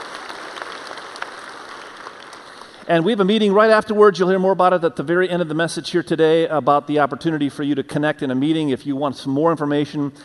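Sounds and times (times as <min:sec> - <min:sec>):
audience applause: 0:00.0 - 0:02.9
speech: 0:02.9 - 0:10.2.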